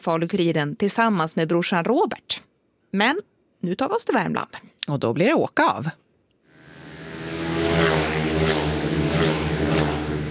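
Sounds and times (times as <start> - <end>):
speech: 0.0 - 6.0
speedway motorcycles racing: 6.5 - 10.2.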